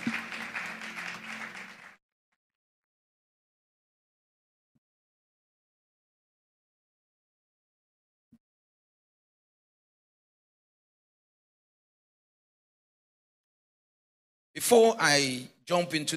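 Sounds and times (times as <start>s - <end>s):
audience clapping: 0.0s - 2.0s
speech: 0.1s - 0.3s, 14.6s - 16.1s.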